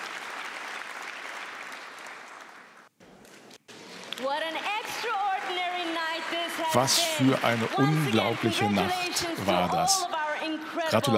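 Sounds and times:
audience applause: 0:00.0 - 0:02.9, 0:04.3 - 0:10.0
speech: 0:04.2 - 0:11.1.

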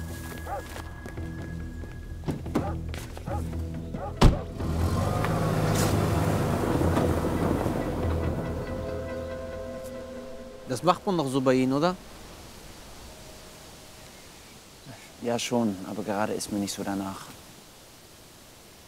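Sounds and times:
car driving: 0:00.0 - 0:14.6
car engine idling: 0:04.0 - 0:09.8
car door thump: 0:04.1 - 0:04.5
speech: 0:10.8 - 0:12.1, 0:15.2 - 0:17.4.

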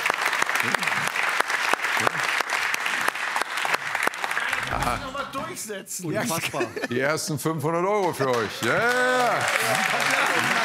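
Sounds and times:
studio audience applause: 0:00.0 - 0:05.5, 0:08.0 - 0:10.6
speech: 0:00.6 - 0:00.9, 0:04.9 - 0:10.6
laughter: 0:06.1 - 0:07.2.

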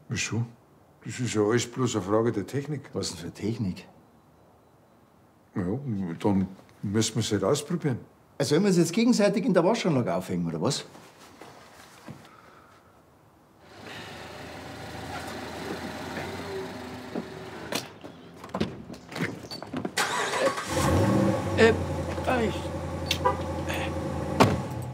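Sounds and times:
speech: 0:00.1 - 0:04.0, 0:05.6 - 0:11.0
car engine starting and idling: 0:13.6 - 0:18.1, 0:20.0 - 0:24.9.

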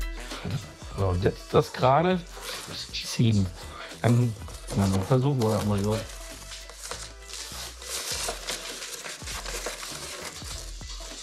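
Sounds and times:
speech: 0:00.4 - 0:06.2
plastic film being cut and torn: 0:04.0 - 0:11.2.

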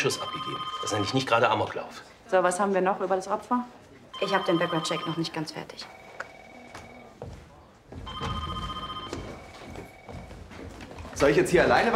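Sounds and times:
telephone ringing with steady electronic tones: 0:00.0 - 0:01.8, 0:04.2 - 0:07.2, 0:08.0 - 0:10.5
speech: 0:00.0 - 0:06.0, 0:11.2 - 0:11.9
faint voices: 0:01.9 - 0:11.9
clattering knocks: 0:07.9 - 0:11.2.

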